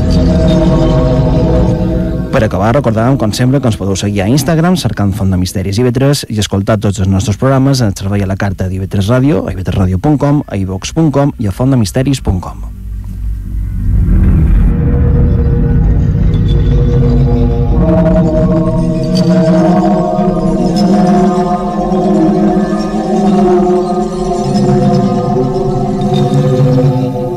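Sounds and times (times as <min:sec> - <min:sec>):
church bells ringing in a peal: 0:00.0 - 0:05.3, 0:16.3 - 0:27.3
low rumbling background: 0:00.0 - 0:27.3
speech: 0:02.4 - 0:12.8.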